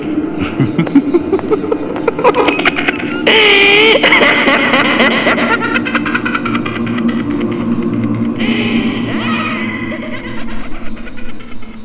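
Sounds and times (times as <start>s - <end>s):
clown laughing: 0.4s - 7.7s, 8.4s - 11.4s.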